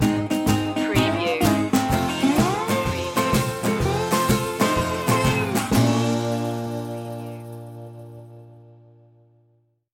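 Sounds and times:
music stinger: 0:00.8 - 0:09.1.

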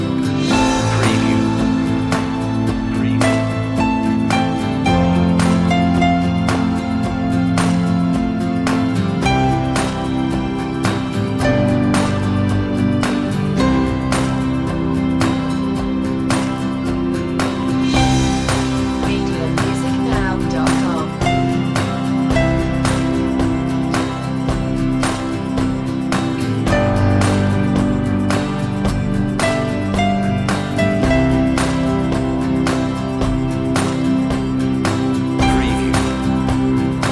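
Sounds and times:
piano lead: 0:00.0 - 0:37.1.

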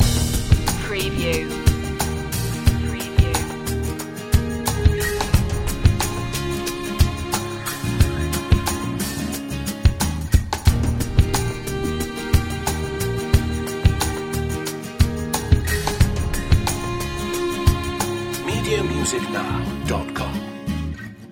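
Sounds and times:
joyful summer music loop: 0:00.0 - 0:20.4.

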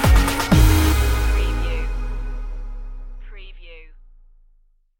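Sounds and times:
pumped up music stinger: 0:00.1 - 0:03.2.

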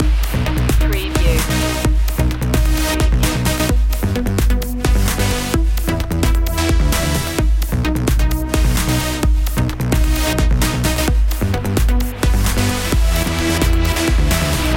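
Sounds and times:
summer trance music loop: 0:00.0 - 0:14.7.

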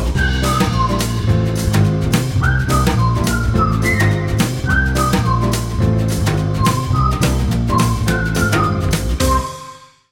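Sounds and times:
magic whistle: 0:00.1 - 0:10.1.

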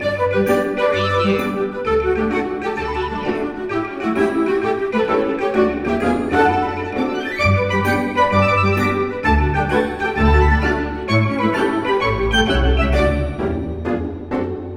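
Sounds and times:
cheerful music loop: 0:00.0 - 0:14.7.

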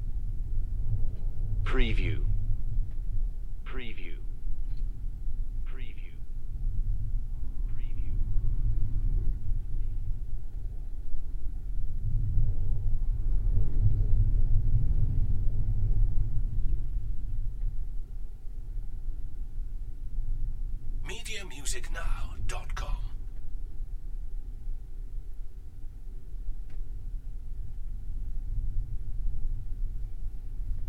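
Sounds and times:
wind: 0:00.0 - 0:30.8.

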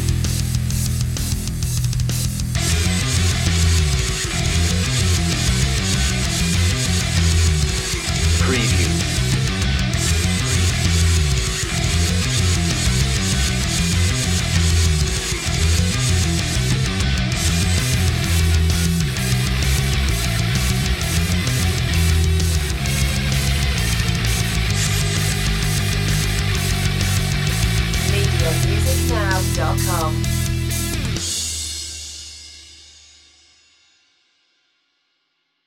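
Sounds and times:
bass-heavy jam music: 0:00.0 - 0:31.6.

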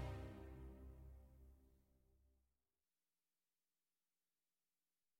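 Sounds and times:
brass: 0:00.0 - 0:01.2
strings: 0:00.0 - 0:01.3.

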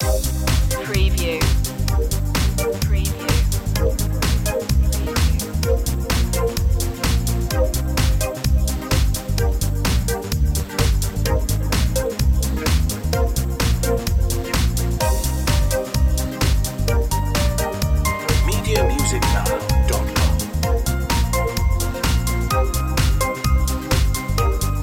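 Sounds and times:
beat: 0:00.0 - 0:12.0, 0:12.7 - 0:24.3.

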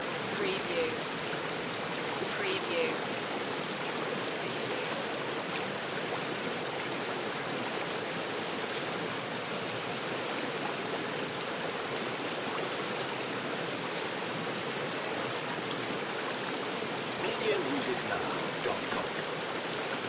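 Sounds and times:
medium river or stream flowing: 0:00.0 - 0:20.0.

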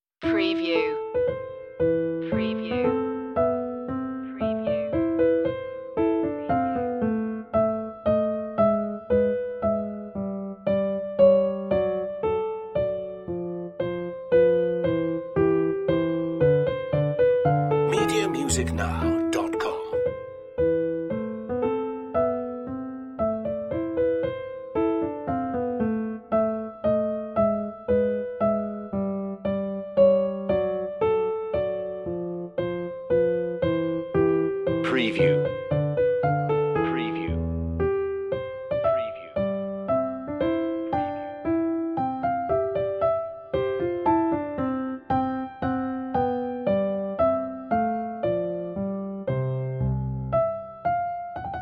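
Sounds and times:
minuet: 0:00.3 - 0:51.6.

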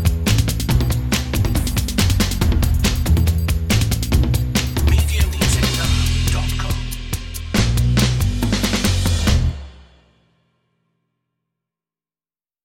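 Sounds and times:
bass: 0:00.0 - 0:09.8
drums: 0:00.0 - 0:10.2.

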